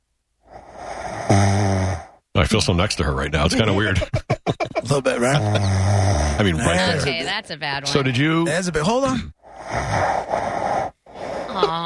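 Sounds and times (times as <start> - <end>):
woman snoring: 0.6 - 2.1, 5.3 - 8.0, 9.7 - 11.8
speech: 2.4 - 9.4
laughter: 3.4 - 5.8, 6.4 - 7.7, 11.5 - 11.8.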